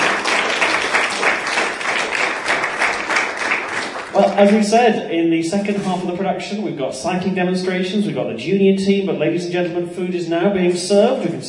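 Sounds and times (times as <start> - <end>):
audience applause: 0.0 - 4.8
speech: 4.3 - 11.4.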